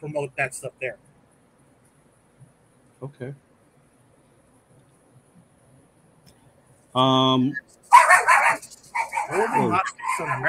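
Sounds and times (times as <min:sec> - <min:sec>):
speech: 0:00.0 - 0:01.1, 0:03.0 - 0:03.4, 0:06.9 - 0:08.0, 0:08.6 - 0:10.4
dog barking: 0:07.9 - 0:10.4.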